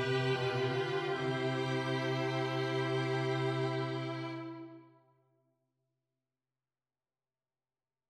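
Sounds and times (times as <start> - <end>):
string quartet playing counterpoint practice: 0.0 - 4.9.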